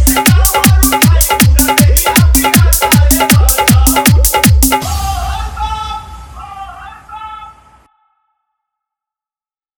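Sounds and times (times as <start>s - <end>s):
dholki bass dance mix: 0.0s - 7.7s.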